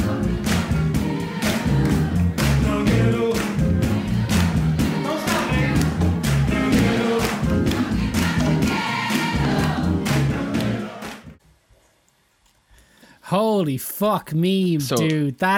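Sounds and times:
pounding band beat: 0.0 - 10.8
joyful crowd singing and cheering at a live show: 0.0 - 11.4
speech: 13.4 - 15.5.

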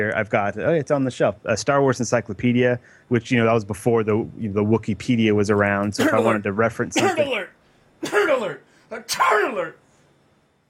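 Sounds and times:
speech: 0.0 - 9.8
person sneezing: 6.0 - 6.4, 7.0 - 7.4, 8.0 - 9.6.

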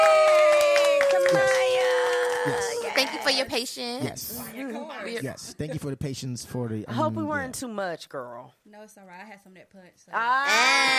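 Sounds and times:
crowd cheering and applause: 0.0 - 3.4
speech: 2.4 - 10.9.

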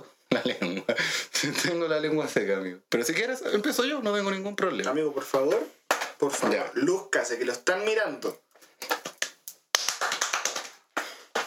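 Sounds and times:
laughter: 0.3 - 1.7
speech: 0.4 - 0.7, 1.4 - 8.9
person clapping hands: 5.5 - 6.2, 8.8 - 11.4.

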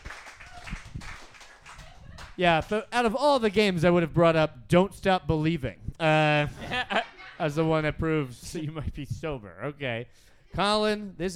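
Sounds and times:
audience clapping: 0.0 - 2.8
speech: 2.4 - 11.3
laughter: 6.0 - 7.7.

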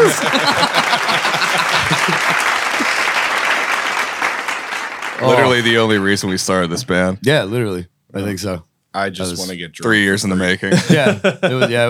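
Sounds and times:
laughter: 0.0 - 3.3, 10.6 - 11.8
audience applause for a band: 0.0 - 6.1
speech: 0.1 - 0.5, 5.5 - 11.8.

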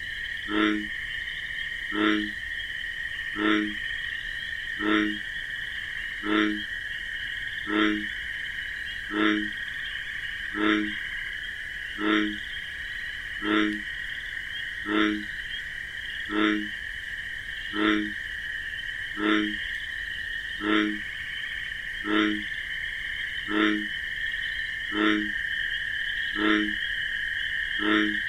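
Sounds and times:
bullfrog low, resonant croaks: 0.0 - 28.2
continuous shrill insect chorus: 0.0 - 28.2.

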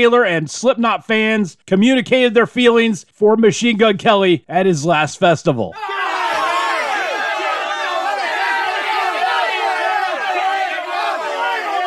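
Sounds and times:
speech: 0.0 - 6.2
festival crowd booing and heckling: 5.8 - 11.8.

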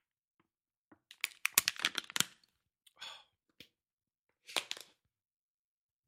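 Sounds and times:
plastic water bottle crinkling: 1.1 - 2.4
short breathy exhale: 3.0 - 3.3.

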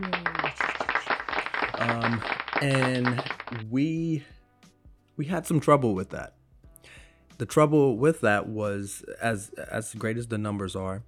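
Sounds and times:
round of applause: 0.0 - 3.7
speech: 1.9 - 4.4, 5.2 - 11.0.

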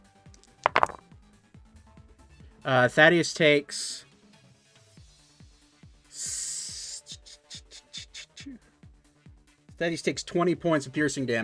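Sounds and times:
dice rolled during a tabletop role-playing game session: 0.4 - 1.0
speech: 2.6 - 4.1, 9.8 - 11.4.

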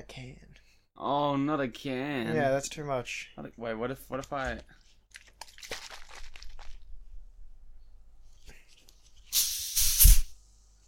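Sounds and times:
speech: 0.1 - 4.8
shaken Pepsi Max plastic bottle reopened with escaping fizz: 9.3 - 10.3.

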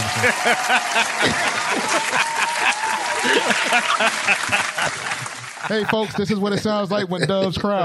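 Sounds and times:
scattered cheers and voices: 0.0 - 6.0
sustained applause from a sizable crowd: 0.0 - 6.2
laughter: 0.0 - 7.8
speech: 0.2 - 7.8.

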